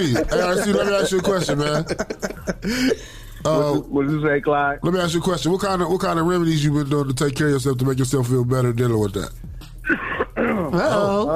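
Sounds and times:
laughter: 0.0 - 3.1, 9.9 - 11.3
speech: 0.0 - 11.3
cough: 9.9 - 11.0.

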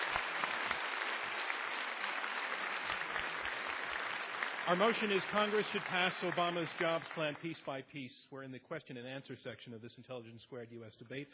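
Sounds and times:
crowd applause: 0.0 - 7.5
speech: 4.7 - 11.3.

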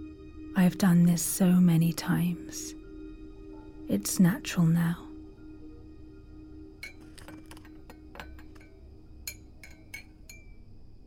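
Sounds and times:
steady low hum: 0.0 - 11.0
speech: 0.6 - 2.8, 3.9 - 5.0
cup clinking while making tea: 6.8 - 10.7.

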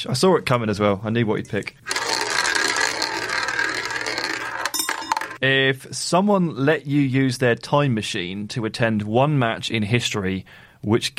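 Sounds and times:
speech: 0.0 - 2.0, 5.4 - 11.1
prize wheel spun by hand, pointer ratcheting against the pegs: 1.9 - 5.4.

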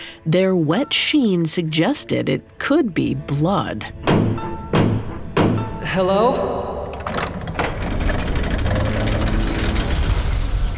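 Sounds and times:
speech: 0.2 - 4.5, 5.9 - 6.7
sharp ratcheting clicks: 7.0 - 10.0
heavy gears creaking as massive door opens: 7.0 - 10.7.

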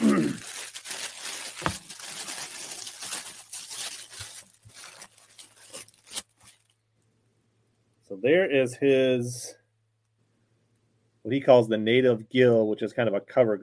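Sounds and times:
tissue paper crinkling as a package with a fishing shirt and lures is unwrapped: 0.0 - 6.7
speech: 8.2 - 9.6, 11.3 - 13.6.

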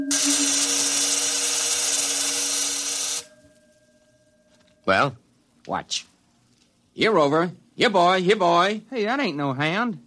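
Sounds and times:
electric field vibrating and discharging: 0.0 - 5.6
speech: 4.9 - 6.1, 7.0 - 10.0.

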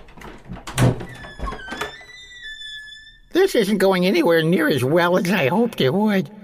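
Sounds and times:
doorknob turning and UFO door opening in a video game: 0.0 - 3.2
speech: 3.4 - 6.4.

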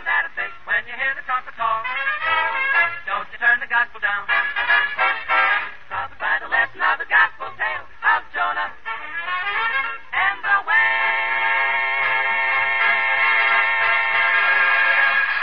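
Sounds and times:
recorded gospel quartet singing: 0.0 - 15.3.

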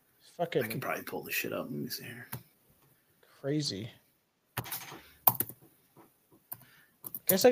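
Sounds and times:
speech: 0.4 - 2.4, 3.4 - 4.0, 7.3 - 7.5
keystrokes on a laptop keyboard: 4.6 - 5.7, 6.5 - 7.5.

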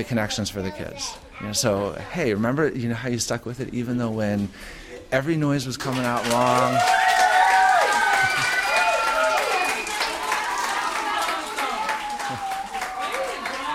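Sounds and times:
speech: 0.0 - 7.0
applause from a crowd of schoolchildren: 5.8 - 13.7.

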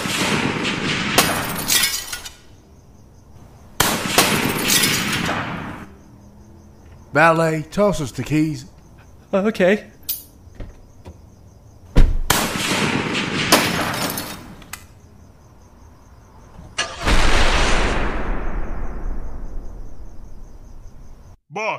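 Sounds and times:
gunfire volleys: 0.0 - 2.2, 3.8 - 5.9, 12.2 - 14.6, 16.8 - 19.8
speech: 7.1 - 8.7, 9.3 - 9.9.

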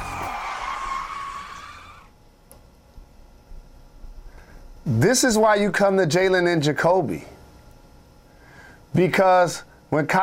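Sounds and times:
brakes screeching sound effect: 0.0 - 2.1
speech: 4.9 - 7.3, 9.0 - 10.2.

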